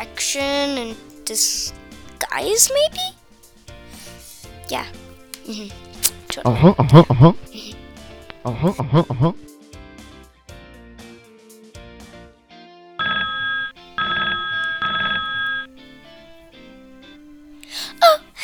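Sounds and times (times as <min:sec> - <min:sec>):
speech: 0:00.2 - 0:03.2, 0:04.7 - 0:07.8, 0:08.4 - 0:09.5
telephone bell ringing in a house: 0:13.0 - 0:15.9.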